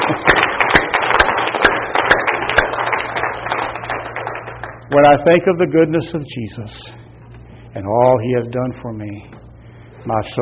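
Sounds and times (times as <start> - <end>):
hand clapping: 0.0 - 5.1
speech: 4.9 - 7.0, 7.7 - 9.4, 10.0 - 10.3.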